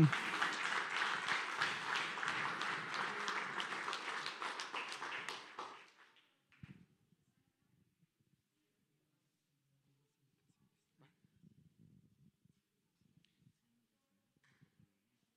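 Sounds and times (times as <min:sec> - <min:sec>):
audience clapping: 0:00.0 - 0:06.2.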